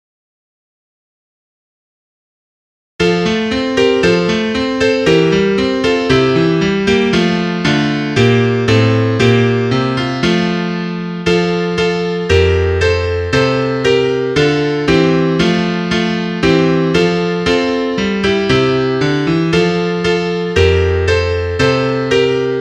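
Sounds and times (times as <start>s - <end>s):
piano: 3.0s - 22.5s.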